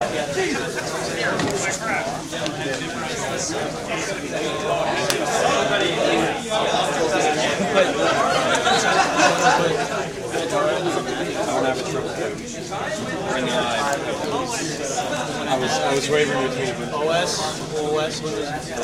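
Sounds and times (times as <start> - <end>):
laughter: 0.0 - 18.1
crowd: 0.0 - 18.8.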